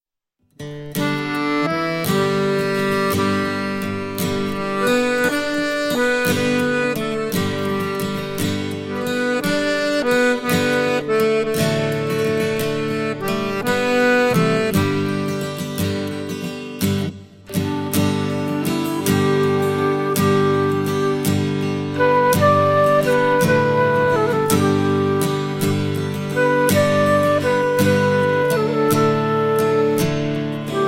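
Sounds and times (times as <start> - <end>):
song: 1.0 - 16.2, 17.1 - 30.8.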